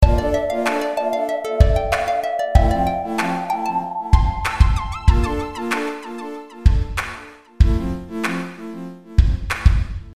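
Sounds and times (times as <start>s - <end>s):
music beat: 0.0s - 10.1s.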